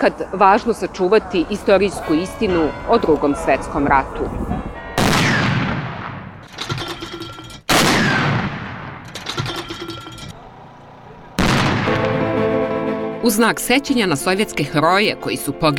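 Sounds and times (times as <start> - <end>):
speech: 0.0 - 4.5, 13.2 - 15.7
artillery salute gunfire: 5.0 - 10.2, 11.4 - 12.4.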